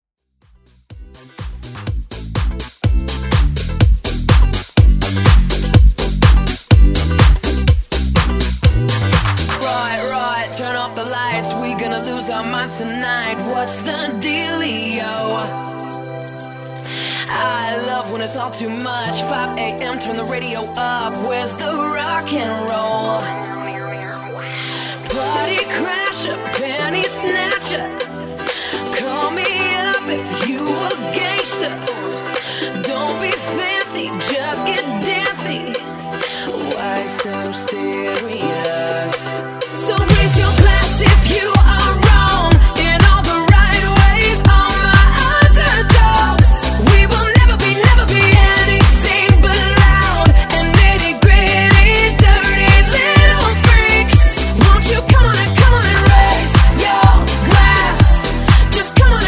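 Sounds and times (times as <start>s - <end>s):
house music mix: 0.5s - 59.2s.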